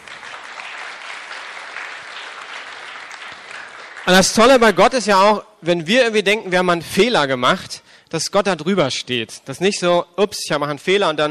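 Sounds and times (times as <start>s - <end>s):
audience applause: 0.0s - 4.6s
speech: 4.1s - 11.2s.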